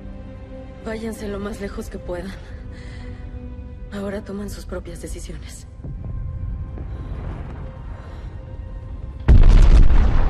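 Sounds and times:
speech: 0.8 - 3.0, 3.9 - 5.7
huge explosion: 9.3 - 10.2.

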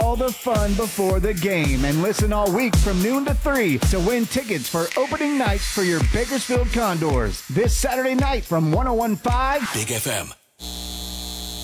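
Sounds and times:
speech: 0.1 - 10.8
electrical hum from a data center: 10.6 - 11.6.

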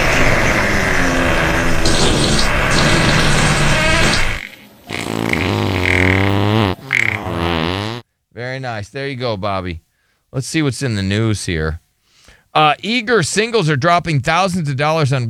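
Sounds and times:
big fart sound effect: 0.0 - 8.0
speech: 8.6 - 11.8, 12.5 - 15.2.

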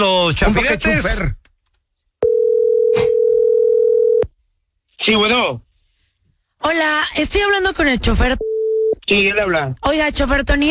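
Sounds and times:
speech: 0.0 - 1.4, 5.1 - 5.7, 6.6 - 8.5, 9.1 - 10.6
telephone dial tone: 2.2 - 4.3.

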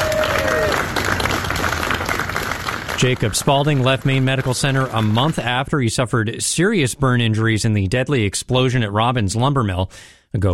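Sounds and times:
applause as an injured firefighter leaves Maine Medical Center: 0.0 - 5.6
speech: 3.0 - 10.5.

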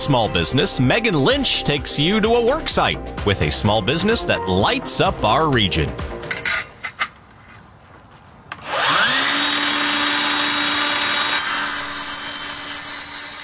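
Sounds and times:
speech: 0.0 - 6.2
tabletop miter saw trimming lighting track: 8.5 - 13.4.

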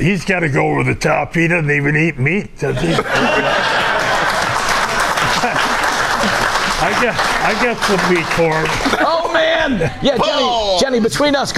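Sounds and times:
speech: 0.0 - 3.8, 6.2 - 11.5
laughter: 2.7 - 10.5
passionate crowd applauding: 3.0 - 9.2.

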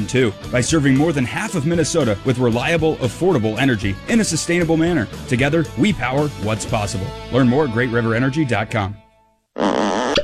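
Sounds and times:
speech: 0.0 - 9.0
fart: 9.6 - 10.2
brief sharp squeak: 9.7 - 10.2.

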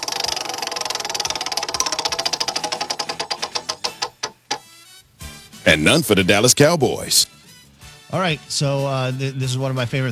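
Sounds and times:
big prize wheel spinning in a studio: 0.0 - 4.6
speech: 5.7 - 7.3, 8.1 - 10.1.

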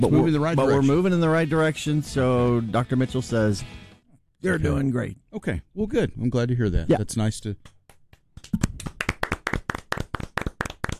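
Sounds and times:
speech: 0.0 - 3.8, 4.4 - 7.8
person giving a light polite golf clap: 7.6 - 10.9.

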